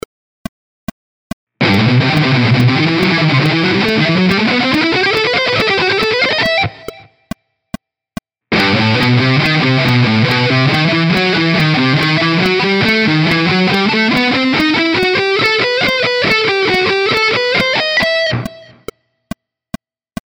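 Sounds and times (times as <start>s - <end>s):
ascending guitar shred: 1.6s - 7.1s, 8.5s - 18.8s.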